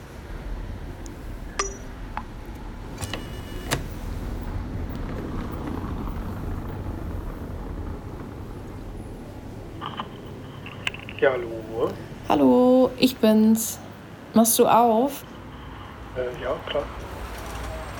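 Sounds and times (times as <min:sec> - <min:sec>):
doorbell ringing: 0:01.6 - 0:01.9
speech: 0:11.2 - 0:15.3, 0:16.2 - 0:17.0.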